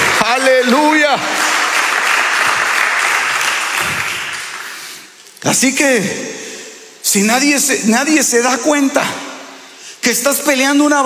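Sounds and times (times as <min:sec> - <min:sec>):
audience applauding loudly: 0:00.0 - 0:05.2
speech: 0:00.6 - 0:01.4, 0:05.5 - 0:06.4, 0:07.0 - 0:09.3, 0:10.0 - 0:11.0.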